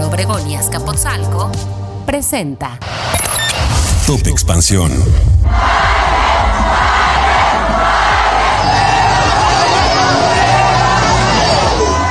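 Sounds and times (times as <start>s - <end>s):
speech: 0.2s - 3.3s, 4.1s - 6.0s
crowd booing at university visit: 5.5s - 12.0s.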